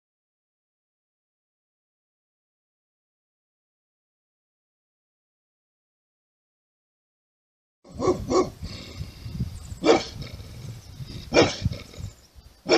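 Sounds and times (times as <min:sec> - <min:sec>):
bulldog barking deeply: 0:07.9 - 0:09.0, 0:09.8 - 0:10.6, 0:11.2 - 0:12.7.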